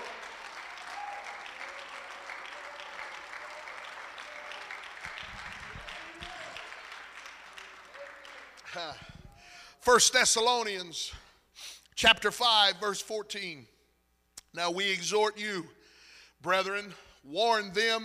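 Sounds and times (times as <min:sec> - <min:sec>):
audience clapping: 0:00.0 - 0:09.3
speech: 0:08.7 - 0:09.1, 0:09.8 - 0:11.2, 0:12.0 - 0:13.7, 0:14.6 - 0:15.8, 0:16.4 - 0:18.0.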